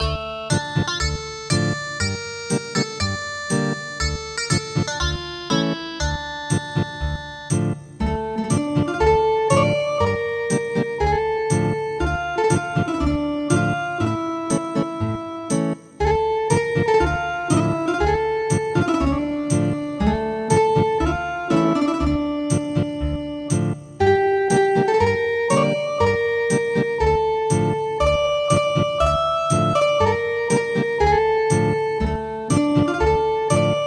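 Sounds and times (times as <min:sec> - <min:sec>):
ethnic guitar music: 0:00.0 - 0:33.8.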